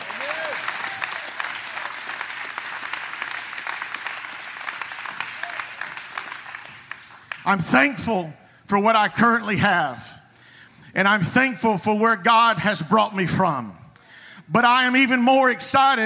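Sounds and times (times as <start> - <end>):
audience clapping hands: 0.0 - 7.9
speech: 7.4 - 10.1, 10.9 - 13.8, 14.5 - 16.0.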